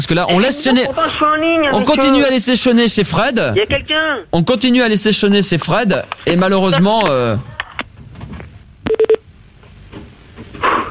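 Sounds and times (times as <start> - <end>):
speech: 0.0 - 7.5
telephone ringing: 8.9 - 9.2.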